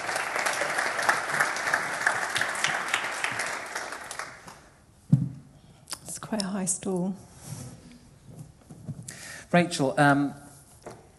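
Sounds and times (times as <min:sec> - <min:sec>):
polite ripple of applause: 0:00.0 - 0:04.8
speech: 0:06.3 - 0:07.3, 0:09.5 - 0:10.4.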